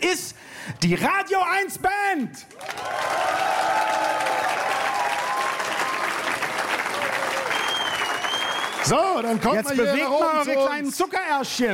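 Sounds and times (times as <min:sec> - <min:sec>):
speech: 0:00.2 - 0:03.1, 0:08.8 - 0:11.7
cheering: 0:02.5 - 0:09.4
large crowd applause for a band: 0:02.6 - 0:09.6
whistles: 0:07.3 - 0:09.0.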